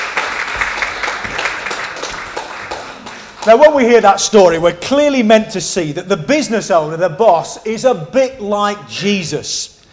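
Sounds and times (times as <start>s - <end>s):
crowd applause: 0.0s - 3.7s
speech: 3.4s - 9.8s.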